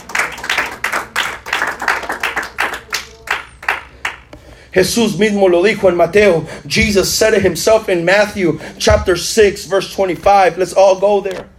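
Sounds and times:
crowd audience applauding loudly: 0.0 - 4.3
speech: 4.7 - 11.5.

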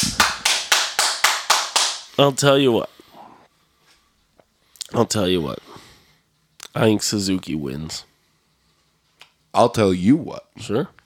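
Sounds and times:
one person clapping hands imitating crowd applause: 0.0 - 2.1
speech: 2.2 - 3.0, 4.9 - 5.7, 6.8 - 8.1, 9.5 - 11.0.

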